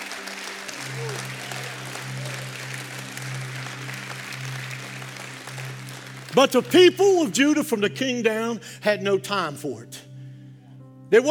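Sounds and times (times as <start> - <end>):
applause from a congregation during a sermon: 0.0 - 7.4
speech: 6.3 - 10.1, 11.1 - 11.2.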